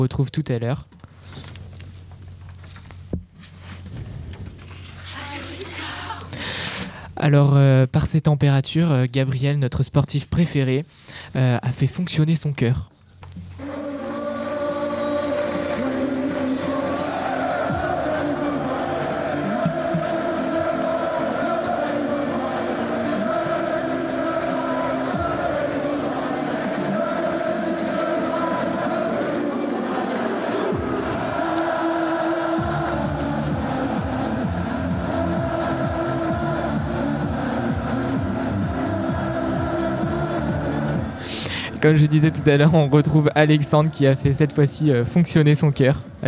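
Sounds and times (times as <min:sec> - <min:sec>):
speech: 0:00.0 - 0:01.5, 0:07.2 - 0:12.9, 0:41.8 - 0:46.2
Irish football fans cheering at Euro 2016: 0:13.6 - 0:46.2.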